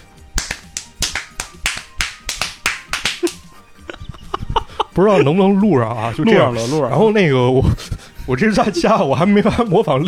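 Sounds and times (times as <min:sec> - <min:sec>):
hand claps and slaps in a clapping-game rhythm: 0:00.0 - 0:03.6
speech: 0:05.0 - 0:10.0.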